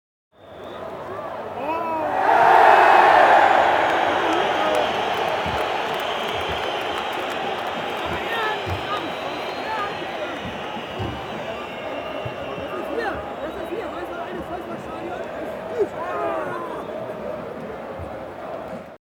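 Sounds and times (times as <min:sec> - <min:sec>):
stadium crowd atmosphere: 0:00.4 - 0:18.9.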